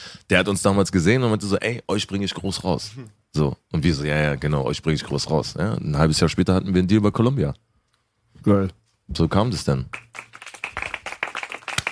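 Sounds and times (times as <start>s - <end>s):
speech: 0.3s - 7.7s, 8.4s - 10.0s
applause: 9.9s - 11.9s.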